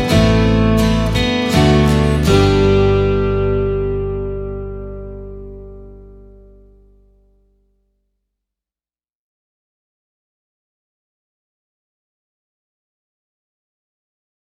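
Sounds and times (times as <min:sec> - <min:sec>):
Catalonian song: 0:00.0 - 0:06.7.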